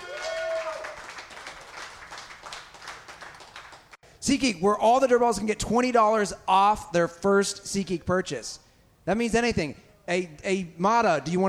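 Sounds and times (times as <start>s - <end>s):
high whoop or whistle: 0.0s - 1.0s
crowd clapping: 0.0s - 4.0s
speech: 4.2s - 11.4s.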